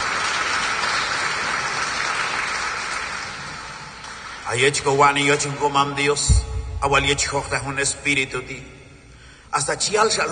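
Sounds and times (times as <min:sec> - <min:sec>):
congregation clapping loudly during a church service: 0:00.0 - 0:05.1
speech: 0:04.5 - 0:08.8, 0:09.5 - 0:10.3.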